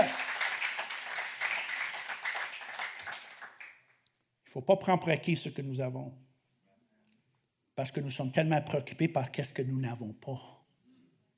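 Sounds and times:
audience applause: 0:00.0 - 0:03.8
speech: 0:04.5 - 0:06.3, 0:07.8 - 0:10.6.

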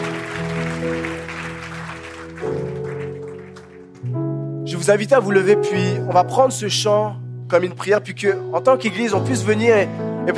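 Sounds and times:
church congregation applauding in a standing ovation: 0:00.0 - 0:04.2
speech: 0:04.8 - 0:10.3.

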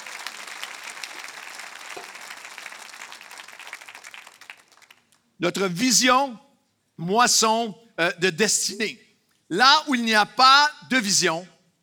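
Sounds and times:
audience applause: 0:00.0 - 0:05.0
speech: 0:05.4 - 0:11.5.

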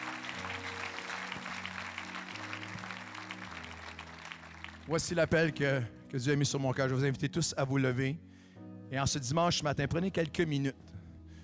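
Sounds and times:
church congregation clapping during a Sunday morning service: 0:00.0 - 0:05.3
speech: 0:04.9 - 0:08.3, 0:08.9 - 0:10.9.

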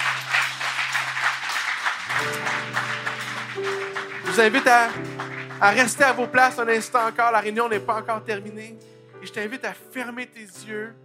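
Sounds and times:
audience applause: 0:00.0 - 0:06.6
sustained low keyboard or organ notes: 0:00.0 - 0:09.6
speech: 0:04.4 - 0:11.0.

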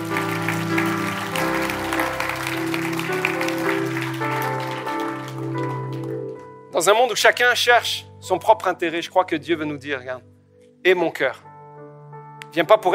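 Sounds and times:
audience applauding: 0:00.0 - 0:06.4
speech: 0:06.8 - 0:11.5, 0:12.5 - 0:12.9.

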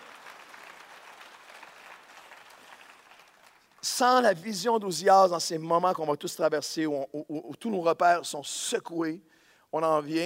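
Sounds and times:
audience applause: 0:00.0 - 0:03.8
speech: 0:03.9 - 0:10.2.

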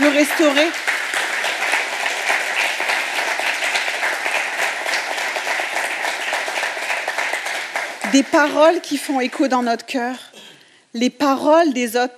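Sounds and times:
applause: 0:00.0 - 0:09.4
speech: 0:00.2 - 0:00.8, 0:08.1 - 0:10.3, 0:10.9 - 0:12.1.

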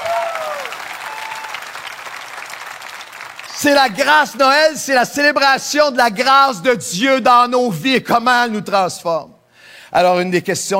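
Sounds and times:
audience applause: 0:00.0 - 0:03.8
speech: 0:03.6 - 0:10.7.

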